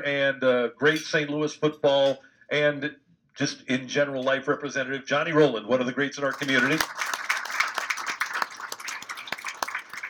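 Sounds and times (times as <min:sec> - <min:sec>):
speech: 0:00.0 - 0:07.1
audience applause: 0:06.3 - 0:10.0.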